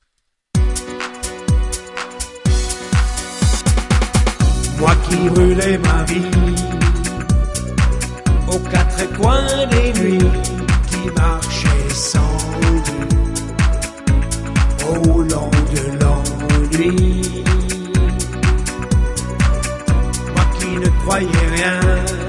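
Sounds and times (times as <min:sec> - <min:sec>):
music: 0:00.5 - 0:22.2.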